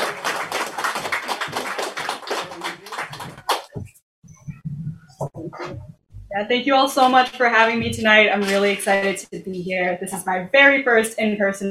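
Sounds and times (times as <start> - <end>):
audience applause: 0.0 - 3.9
speech: 6.4 - 11.6.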